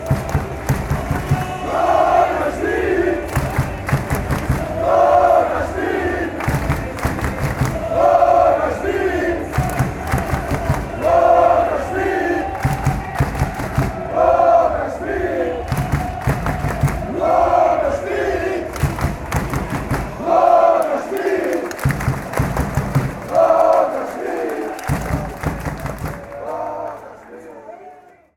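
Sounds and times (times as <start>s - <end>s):
fans singing: 0.0s - 28.0s.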